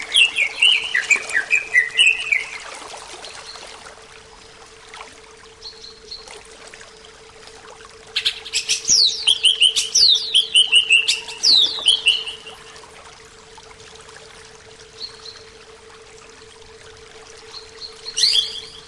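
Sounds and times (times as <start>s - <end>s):
greater green leafbird song: 0.0s - 2.6s, 8.1s - 12.6s, 17.5s - 18.8s.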